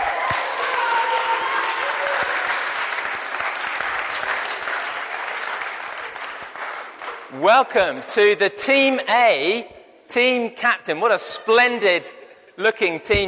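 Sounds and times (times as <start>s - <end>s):
congregation at St. Peter's applauding to welcome a team captain: 0.0s - 8.0s
speech: 7.4s - 13.2s.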